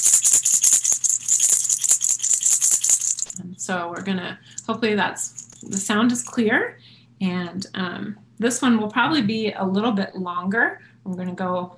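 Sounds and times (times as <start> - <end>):
shaman's rattle shaken, seeds or beads striking its shell: 0.0 - 3.4, 4.6 - 6.4
speech: 3.7 - 11.7.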